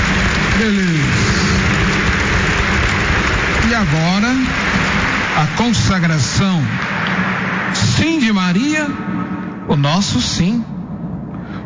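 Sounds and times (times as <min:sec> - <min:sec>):
applause: 0:00.0 - 0:08.8
speech: 0:00.6 - 0:00.9, 0:09.8 - 0:10.8.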